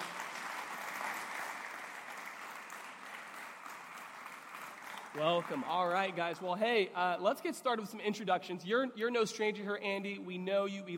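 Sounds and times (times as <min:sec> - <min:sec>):
audience applause: 0:00.0 - 0:06.4
speech: 0:05.2 - 0:10.9.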